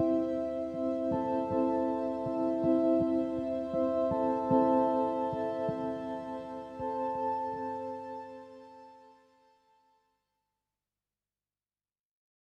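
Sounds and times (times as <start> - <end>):
ambient music: 0.0 - 9.8.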